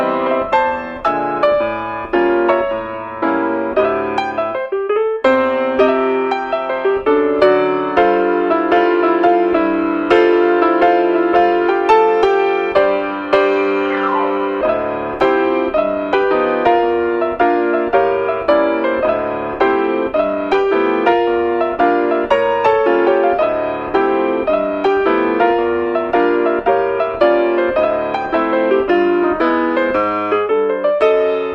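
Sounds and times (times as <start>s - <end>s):
jazz piano: 0.0s - 31.5s.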